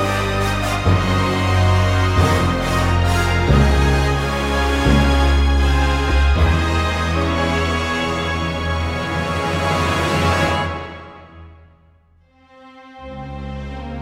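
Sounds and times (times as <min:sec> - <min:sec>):
instrumental big band jazz cover: 0:00.0 - 0:11.2.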